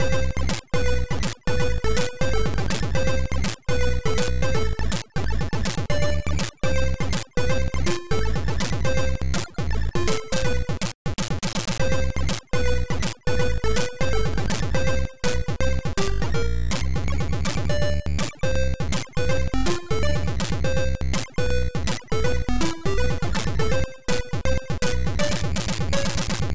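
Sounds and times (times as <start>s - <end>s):
quick music mix: 0.0s - 10.8s, 11.8s - 26.5s.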